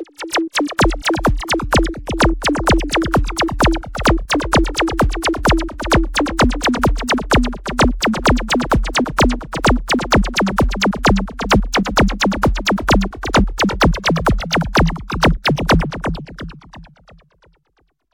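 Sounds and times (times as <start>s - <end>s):
bass drum: 0.3s - 17.0s.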